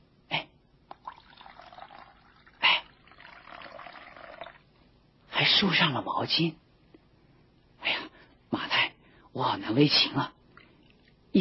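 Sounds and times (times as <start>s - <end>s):
water poured into a basin: 0.9s - 4.7s
speech: 5.4s - 6.6s, 9.4s - 10.4s.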